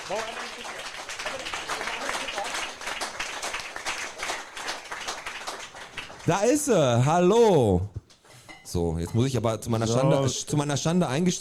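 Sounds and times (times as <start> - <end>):
audience applause: 0.0 - 6.5
speech: 0.1 - 2.6, 6.3 - 8.0, 8.7 - 11.3.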